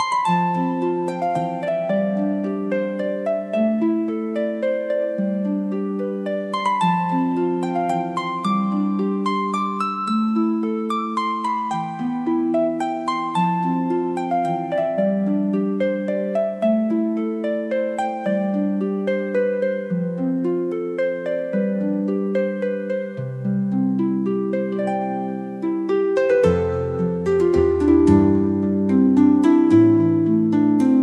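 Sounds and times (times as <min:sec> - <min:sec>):
Celtic harp music: 0:00.0 - 0:31.0.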